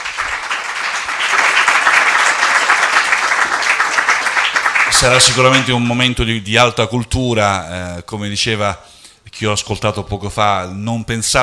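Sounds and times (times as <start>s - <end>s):
audience applause: 0.0s - 5.9s
speech: 5.0s - 11.4s.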